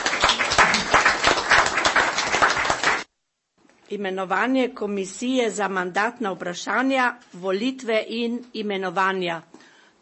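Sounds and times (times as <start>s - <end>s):
group applause: 0.0s - 3.1s
speech: 3.9s - 10.0s.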